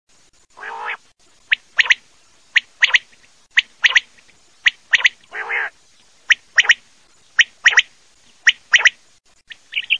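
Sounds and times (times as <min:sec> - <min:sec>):
Common quail calls: 0:00.6 - 0:02.0, 0:02.6 - 0:05.7, 0:06.3 - 0:06.8, 0:07.4 - 0:09.9.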